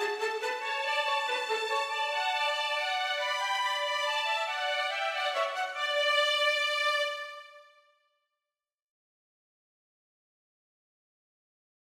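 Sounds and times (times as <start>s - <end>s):
minuet for violin duet: 0.0s - 7.7s.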